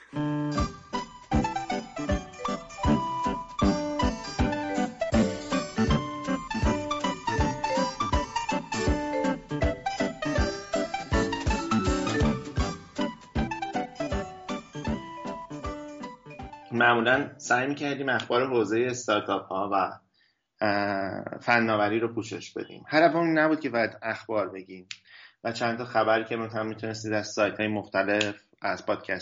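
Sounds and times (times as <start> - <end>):
short instrumental song: 0.0 - 17.3
speech: 16.8 - 20.0, 20.6 - 29.1.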